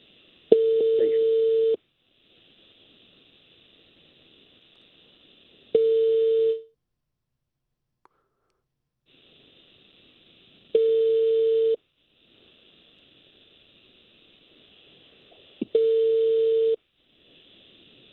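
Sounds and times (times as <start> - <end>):
faint high hum: 0.0 - 6.8, 8.0 - 18.1
calling tones from a phone call to a mobile: 0.5 - 1.8, 5.8 - 6.7, 10.8 - 11.8, 15.7 - 16.8.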